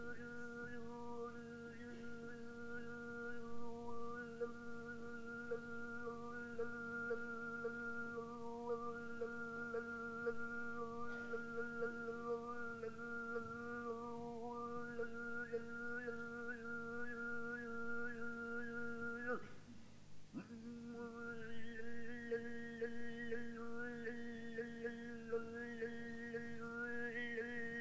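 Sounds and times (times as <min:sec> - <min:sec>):
khoomei throat singing: 0:00.0 - 0:27.7.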